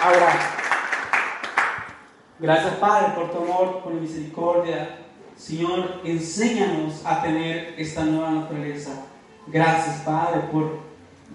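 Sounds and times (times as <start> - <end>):
speech: 0.0 - 0.6, 2.4 - 10.9
audience applause: 0.0 - 1.9.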